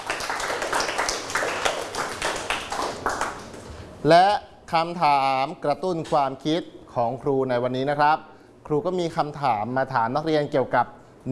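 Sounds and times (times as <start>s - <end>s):
hand clapping: 0.0s - 3.7s
speech: 4.0s - 11.3s.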